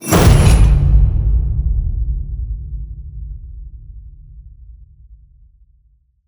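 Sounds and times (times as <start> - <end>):
cinematic metal crash hit: 0.0 - 1.9.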